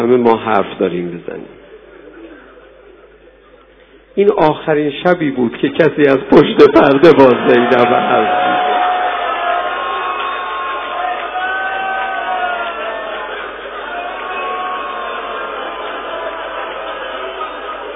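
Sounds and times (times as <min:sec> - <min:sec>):
speech: 0:00.0 - 0:01.6, 0:04.2 - 0:08.6
large crowd shouting and cheering: 0:07.1 - 0:17.9.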